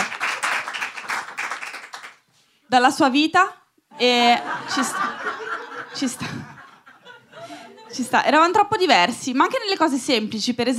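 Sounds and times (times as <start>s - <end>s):
audience applause: 0.0s - 2.2s
speech: 2.7s - 6.5s, 7.9s - 10.7s
laughter: 4.0s - 8.1s.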